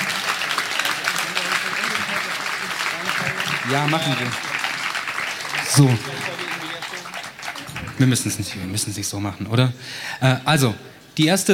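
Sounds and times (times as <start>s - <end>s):
applause: 0.0s - 8.9s
speech: 3.7s - 4.4s, 5.7s - 6.3s, 8.0s - 11.5s.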